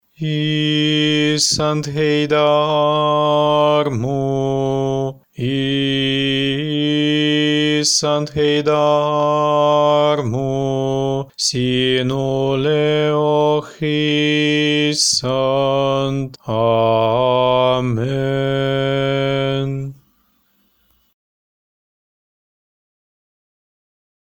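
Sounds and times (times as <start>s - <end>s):
Orthodox litany chanted in Estonian: 0.2s - 20.0s.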